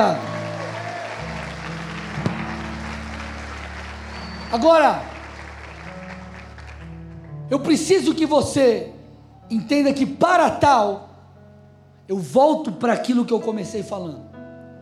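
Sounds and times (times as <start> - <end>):
speech: 0.0 - 0.3, 4.5 - 5.1, 7.5 - 8.9, 9.5 - 11.1, 12.1 - 14.2
audience applause: 0.0 - 7.2.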